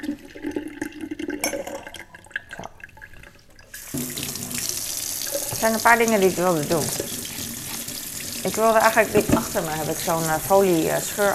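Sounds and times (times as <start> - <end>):
kitchen tap running water into a sink: 3.9 - 10.7
speech: 5.6 - 7.0, 8.4 - 11.3.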